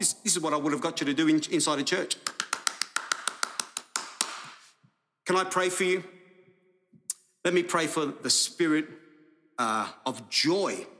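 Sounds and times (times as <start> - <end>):
speech: 0.0 - 2.4, 5.3 - 6.2, 7.4 - 9.0, 9.6 - 10.9
congregation hand clapping: 2.1 - 4.8.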